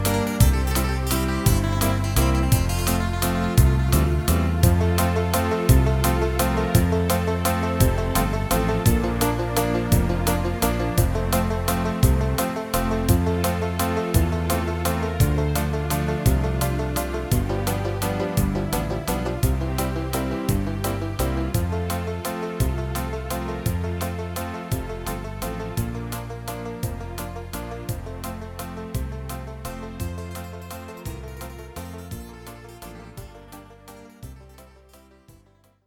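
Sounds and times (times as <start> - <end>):
Irish country pop backing track in F: 0.0 - 35.5.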